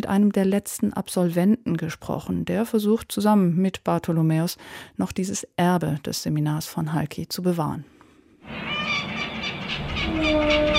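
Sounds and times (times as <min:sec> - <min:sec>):
speech: 0:00.1 - 0:09.0
seagulls calling around a ferry from Istanbul across the Sea of Marmara: 0:08.5 - 0:10.7.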